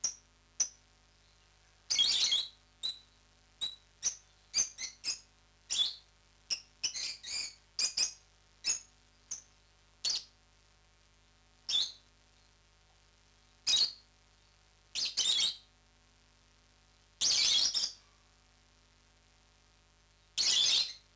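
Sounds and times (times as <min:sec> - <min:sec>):
lovebird chirps, parrots Agapornis: 0:00.0 - 0:10.3, 0:11.7 - 0:12.5, 0:13.7 - 0:14.0, 0:15.0 - 0:15.6, 0:17.2 - 0:18.0, 0:20.4 - 0:21.0.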